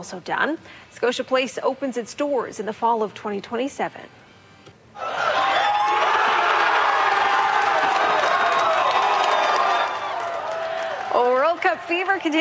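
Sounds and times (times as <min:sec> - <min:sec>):
speech: 0:00.0 - 0:04.2, 0:11.7 - 0:12.3
large crowd cheering and shouting at World Cup watch party: 0:05.0 - 0:11.3.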